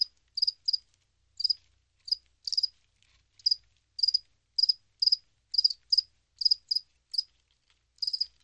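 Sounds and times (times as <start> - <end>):
crickets chirping: 0.0 - 0.8, 1.4 - 2.7, 3.4 - 7.3, 8.0 - 8.3.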